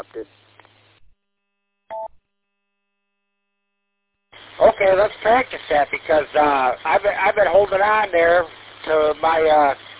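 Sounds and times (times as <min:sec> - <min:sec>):
speech: 0:00.0 - 0:00.5, 0:04.8 - 0:09.8
two-tone electronic roger beep from a radio repeater: 0:01.9 - 0:02.2
radio static bursts: 0:04.4 - 0:09.9.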